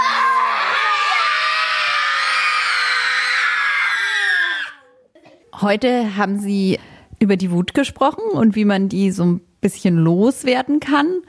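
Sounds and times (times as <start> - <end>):
group of children roaring: 0.0 - 5.1
speech: 5.6 - 11.2.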